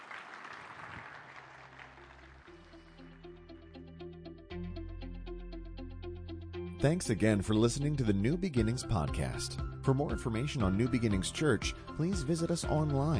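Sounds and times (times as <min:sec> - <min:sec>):
audience clapping hands: 0:00.0 - 0:03.2
speech: 0:06.8 - 0:13.1.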